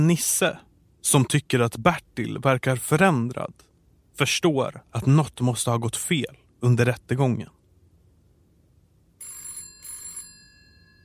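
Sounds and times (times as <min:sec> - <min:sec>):
speech: 0:00.0 - 0:07.6
telephone ringing: 0:09.2 - 0:11.0.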